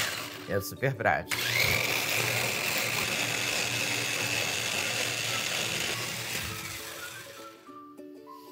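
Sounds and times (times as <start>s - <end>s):
blender running: 0.0s - 0.5s, 1.3s - 7.6s
speech: 0.5s - 1.6s.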